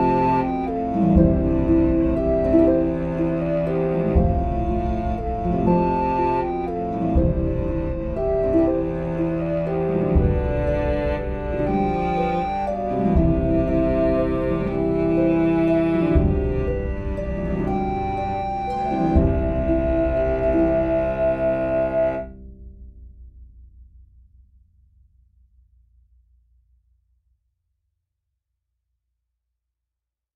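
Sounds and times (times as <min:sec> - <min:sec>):
cello track with melody: 0:00.0 - 0:22.5.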